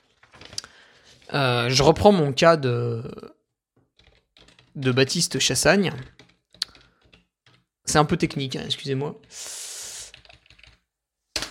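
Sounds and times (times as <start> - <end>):
speech: 1.3 - 3.4, 4.8 - 6.2, 7.9 - 9.6
typing a runner's surname on a computer keyboard: 3.9 - 11.4.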